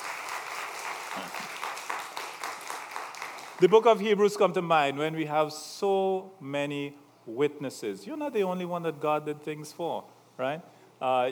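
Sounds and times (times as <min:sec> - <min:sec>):
audience clapping: 0:00.0 - 0:04.4
speech: 0:03.6 - 0:11.2.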